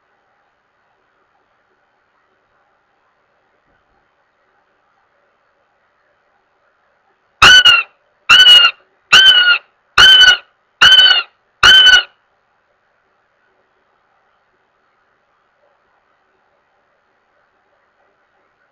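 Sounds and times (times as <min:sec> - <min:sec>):
Northern goshawk wailing with loud drawn-out nasal squeals: 0:07.4 - 0:12.1.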